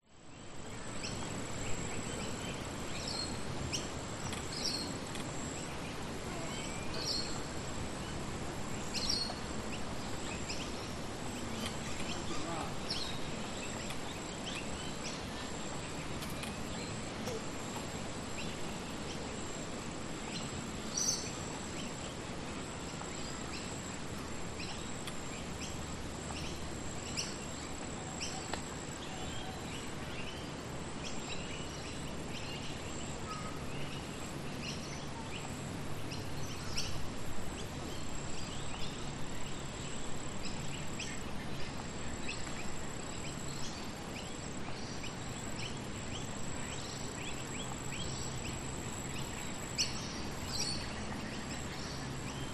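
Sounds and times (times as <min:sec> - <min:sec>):
birds: 0:00.0 - 0:52.5
insects: 0:00.0 - 0:52.5
wind in trees: 0:00.0 - 0:52.5
voices in a park by a lake: 0:11.6 - 0:13.2.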